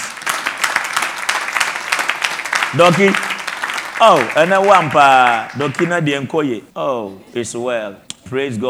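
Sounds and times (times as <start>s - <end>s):
people clapping: 0.0s - 6.4s
speech: 2.7s - 3.3s, 4.0s - 8.6s.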